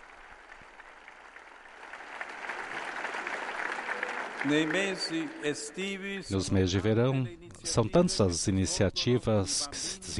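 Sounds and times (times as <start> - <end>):
audience applause: 0.0 - 5.9
speech: 4.4 - 10.1.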